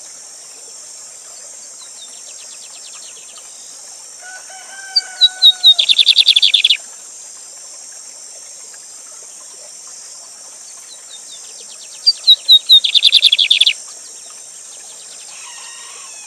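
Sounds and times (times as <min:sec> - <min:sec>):
lined seedeater singing thin whistles and buzzy trill: 0:05.2 - 0:06.8, 0:12.1 - 0:13.8.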